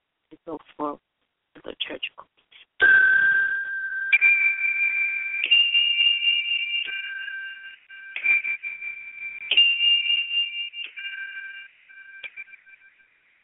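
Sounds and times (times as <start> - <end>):
speech: 0.3 - 1.0
meditation chime ringing: 2.8 - 12.8.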